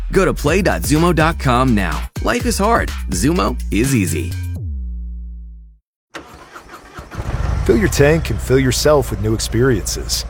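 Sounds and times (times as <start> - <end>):
speech: 0.1 - 4.4, 7.7 - 10.2
Harley-Davidson motorcycle engine starting: 6.1 - 10.2.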